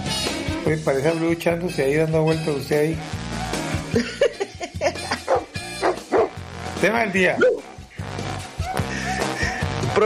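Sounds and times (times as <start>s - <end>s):
speech: 0.6s - 3.2s, 3.9s - 4.4s, 6.8s - 7.6s
laughter: 3.4s - 5.5s, 8.6s - 9.9s
dog barking in short yipping bursts: 5.2s - 6.4s.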